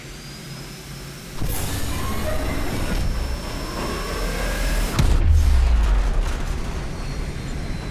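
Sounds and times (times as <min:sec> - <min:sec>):
evacuation warp fly-out effect: 0:01.4 - 0:07.8.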